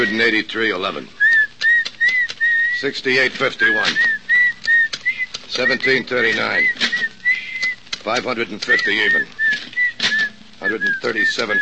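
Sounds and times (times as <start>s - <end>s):
speech: 0.0s - 1.2s, 2.8s - 4.2s, 5.5s - 6.8s, 8.0s - 9.4s, 10.6s - 11.6s
person whistling: 1.2s - 7.8s, 8.6s - 11.6s
clattering: 3.3s - 11.6s.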